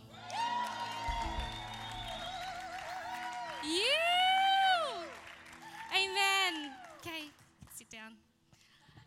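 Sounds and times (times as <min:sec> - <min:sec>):
audience cheering: 0:00.2 - 0:07.0.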